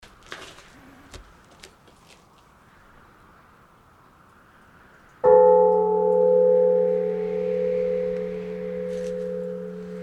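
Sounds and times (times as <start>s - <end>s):
bell ringing: 5.2s - 10.0s.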